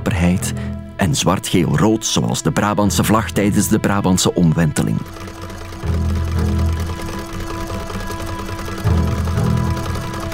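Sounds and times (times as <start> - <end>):
speech: 0.1 - 5.3
sewing machine stitching as a woman sews: 3.0 - 10.3.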